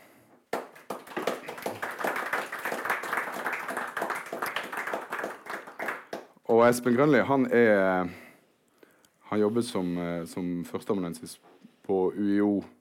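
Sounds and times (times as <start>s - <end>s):
audience applause: 0.5s - 6.3s
speech: 6.5s - 8.2s, 9.3s - 12.7s.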